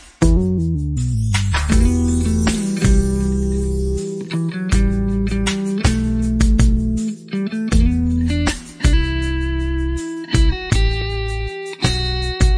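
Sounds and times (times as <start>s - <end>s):
romantic music: 0.2s - 12.5s.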